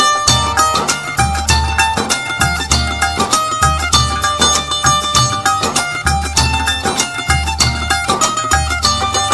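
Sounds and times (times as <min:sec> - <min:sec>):
Indian guitar playing: 0:00.0 - 0:09.3.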